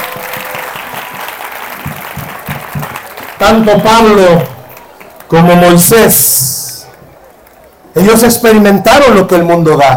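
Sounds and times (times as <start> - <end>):
audience applause: 0.0 - 3.9, 4.6 - 5.3
speech: 3.4 - 4.5, 5.3 - 6.5, 8.0 - 9.9.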